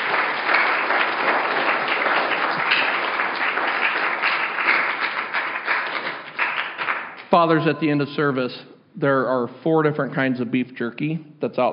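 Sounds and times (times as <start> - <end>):
audience applause: 0.0 - 7.3
speech: 7.3 - 11.7.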